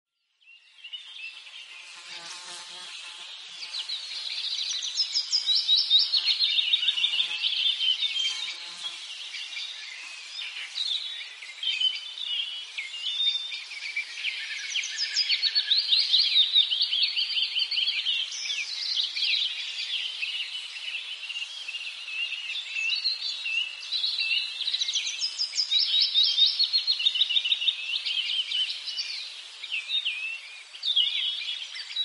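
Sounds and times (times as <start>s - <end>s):
spring birds singing: 0.2s - 32.0s.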